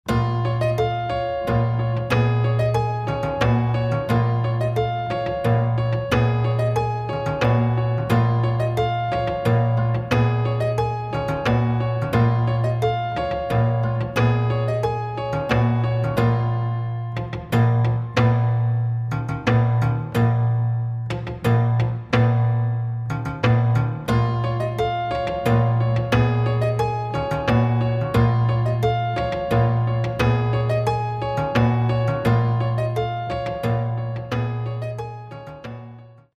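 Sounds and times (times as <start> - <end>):
piano sonata: 0.0 - 36.3.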